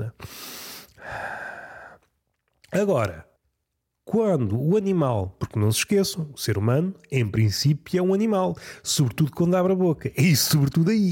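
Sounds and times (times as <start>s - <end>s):
man breathing in while speaking: 0.2s - 2.1s
speech: 2.8s - 3.3s, 4.1s - 11.0s.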